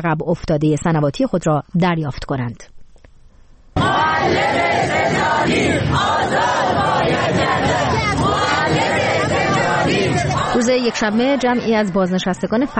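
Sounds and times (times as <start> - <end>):
speech: 0.0 - 2.7, 4.2 - 9.0, 10.6 - 12.7
crowd of protesters chanting slogans: 3.8 - 12.7.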